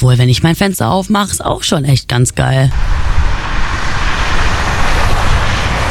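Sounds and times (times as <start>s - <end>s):
speech: 0.0s - 3.2s
street traffic noise: 2.6s - 5.8s.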